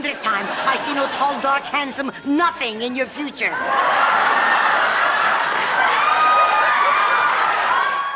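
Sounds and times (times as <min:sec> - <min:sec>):
laughter: 0:00.0 - 0:02.2, 0:03.5 - 0:07.7
speech: 0:00.0 - 0:04.4
studio audience applause: 0:03.6 - 0:08.1.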